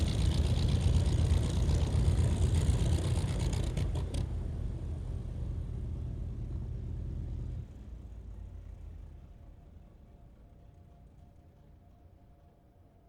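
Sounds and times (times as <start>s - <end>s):
Trojan aircraft squadron taxiing and shutting down: 0.0s - 12.6s.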